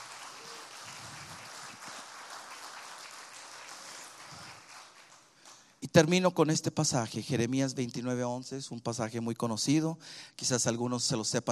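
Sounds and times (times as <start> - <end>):
audience applause: 0.0 - 5.6
speech: 5.8 - 11.5.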